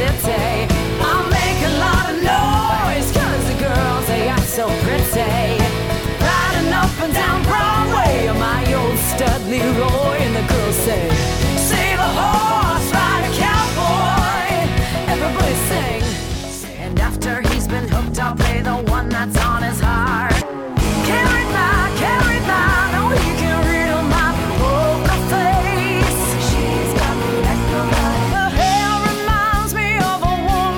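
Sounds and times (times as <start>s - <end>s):
person singing rock pop RnB vocals: 0.0s - 30.7s.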